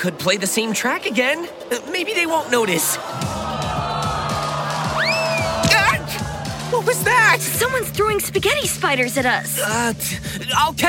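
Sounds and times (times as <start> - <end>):
speech: 0.0 - 3.4, 6.9 - 10.8
angry crowd shouting and yelling: 1.8 - 8.9.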